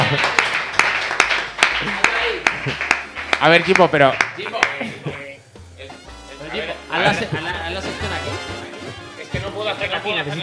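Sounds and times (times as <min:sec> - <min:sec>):
applause sound effect: 0:00.0 - 0:04.9
speech: 0:03.4 - 0:04.5, 0:06.6 - 0:08.1, 0:09.7 - 0:10.4.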